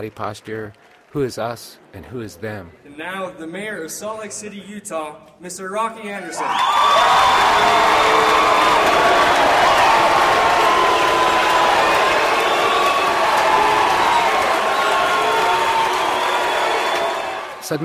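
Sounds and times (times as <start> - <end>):
speech: 0.0 - 9.5, 17.7 - 17.8
crowd cheering: 6.3 - 17.8
shouts and whistles: 6.4 - 17.6.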